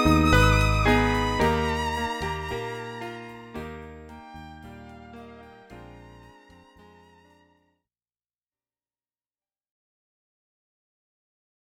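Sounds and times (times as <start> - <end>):
keyboard playing cocktail and dinner music: 0.0 - 7.4.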